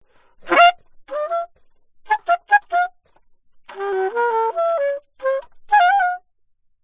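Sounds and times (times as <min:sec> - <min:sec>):
alto saxophone: 0:00.4 - 0:03.0, 0:03.7 - 0:06.2.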